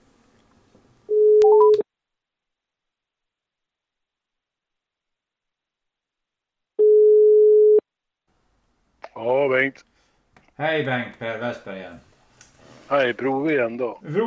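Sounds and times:
rising telephone dialing beeps: 1.1s - 1.8s, 6.8s - 7.8s
steady low telephone tone: 1.1s - 1.8s, 6.8s - 7.8s
speech: 9.2s - 9.9s, 10.6s - 12.1s, 12.9s - 14.2s.

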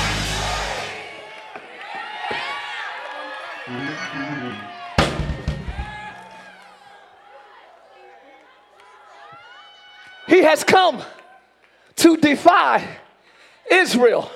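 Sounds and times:
people clapping: 0.0s - 3.9s, 6.1s - 7.0s
crowd screaming and cheering: 0.0s - 11.5s
speech: 3.7s - 4.8s, 10.5s - 11.2s, 12.0s - 13.0s, 13.7s - 14.3s.

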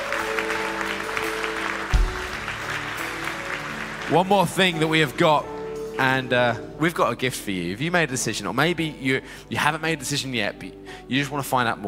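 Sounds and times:
audience applause: 0.0s - 5.8s
speech: 4.1s - 11.8s.

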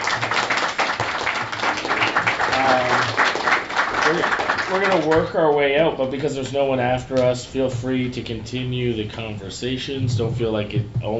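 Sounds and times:
audience applause: 0.0s - 5.4s
speech: 4.1s - 11.1s.

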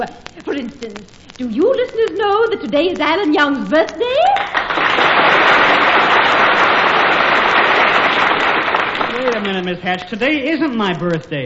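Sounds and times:
speech: 0.0s - 5.5s, 9.3s - 11.4s
audience applause: 4.3s - 9.8s.

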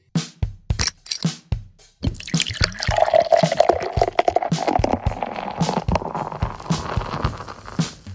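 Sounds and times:
drips and clinks: 0.8s - 1.3s, 2.0s - 5.0s
fizzy beverage pouring into a glass: 2.0s - 7.8s.

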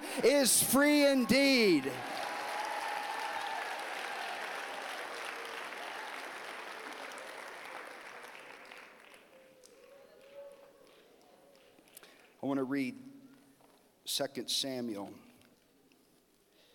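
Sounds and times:
audience round of applause: 0.0s - 11.0s
speech: 0.2s - 2.2s, 12.5s - 13.0s, 14.1s - 15.3s.

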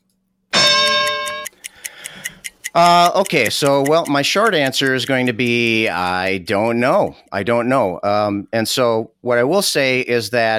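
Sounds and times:
bright loud harmonic tone: 0.6s - 1.5s
timer ticking: 0.6s - 7.4s
speech: 2.8s - 10.5s.

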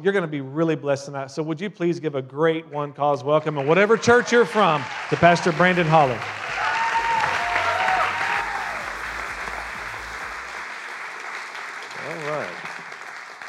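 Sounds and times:
speech: 0.0s - 6.4s
audience applause, hand clapping: 3.4s - 13.4s.

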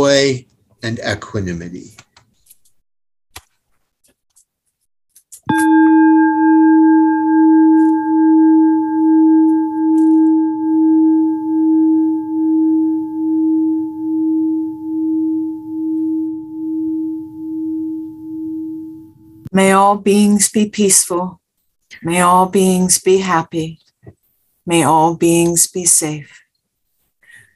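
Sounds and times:
speech: 0.0s - 2.0s, 19.6s - 23.9s, 24.7s - 26.4s
meditation bell ringing: 5.5s - 19.4s.

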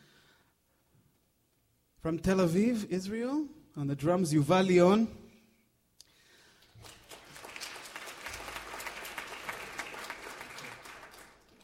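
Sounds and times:
speech: 2.0s - 5.2s
audience applause: 6.7s - 11.6s.

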